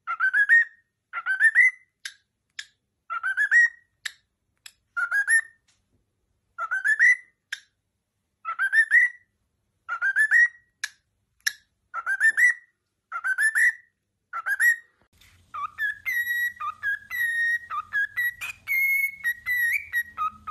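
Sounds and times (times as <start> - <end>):
cockatiel whistling: 0.1 - 2.0, 3.1 - 3.9, 5.0 - 5.6, 6.6 - 7.4, 8.5 - 9.3, 9.9 - 10.6, 12.0 - 14.9, 15.5 - 20.4.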